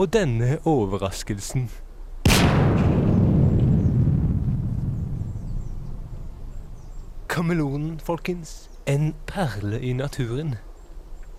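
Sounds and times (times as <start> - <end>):
speech: 0.0 - 1.8, 7.4 - 10.7
dynamite explosion: 2.3 - 6.9.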